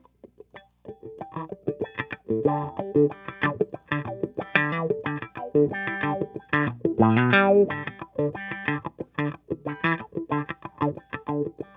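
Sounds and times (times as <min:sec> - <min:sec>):
funk guitar with wah: 0:00.0 - 0:11.7.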